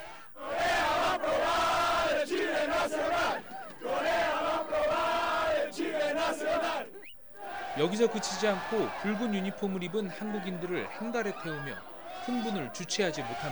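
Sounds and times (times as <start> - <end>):
football fans shouting cheering chants in unison: 0.0 - 13.5
laughter: 2.5 - 13.5
speech: 7.8 - 13.5.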